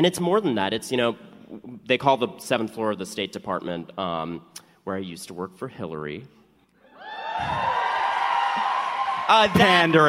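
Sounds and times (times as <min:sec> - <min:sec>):
speech: 0:00.0 - 0:06.4, 0:09.3 - 0:10.0
crowd applause: 0:07.0 - 0:10.0.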